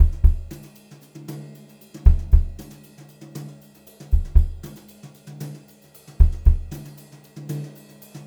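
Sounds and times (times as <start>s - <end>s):
brushed drum loop: 0.0s - 0.8s, 2.0s - 2.9s, 4.1s - 5.0s, 6.1s - 7.1s.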